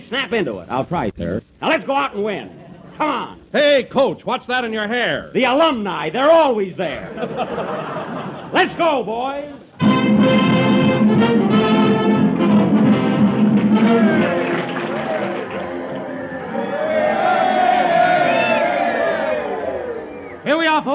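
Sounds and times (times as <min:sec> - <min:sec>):
speech: 0:00.1 - 0:11.6, 0:20.5 - 0:20.9
laughter: 0:07.0 - 0:08.8
crowd cheering at football game: 0:07.2 - 0:08.5, 0:09.8 - 0:20.9.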